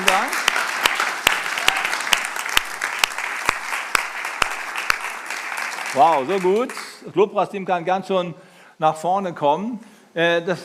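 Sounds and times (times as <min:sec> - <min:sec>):
audience applause: 0:00.0 - 0:07.0
speech: 0:06.0 - 0:10.6.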